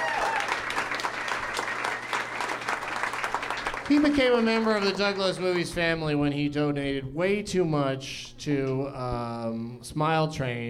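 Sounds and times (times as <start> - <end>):
audience applause: 0.0 - 5.7
speech: 3.9 - 10.6.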